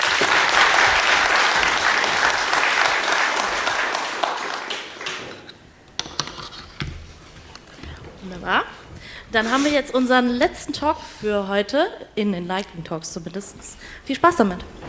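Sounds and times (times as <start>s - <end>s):
audience applause: 0.0s - 5.5s
speech: 9.3s - 14.8s.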